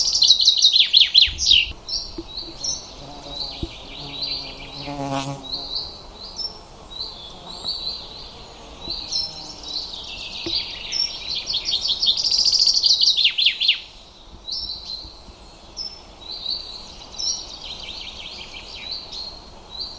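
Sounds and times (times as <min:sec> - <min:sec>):
bird chirping: 0:00.0 - 0:19.9.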